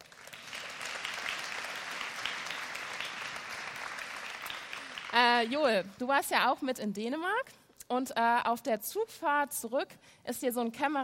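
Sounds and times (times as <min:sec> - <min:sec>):
audience applause: 0:00.0 - 0:06.0
speech: 0:05.4 - 0:11.0.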